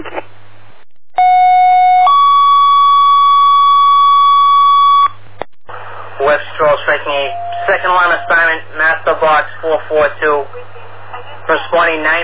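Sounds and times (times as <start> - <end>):
radio static: 0.0 - 0.3, 5.7 - 12.2
fire dispatch alert tone: 1.2 - 5.2, 6.6 - 9.1, 11.5 - 12.2
speech: 9.2 - 10.7.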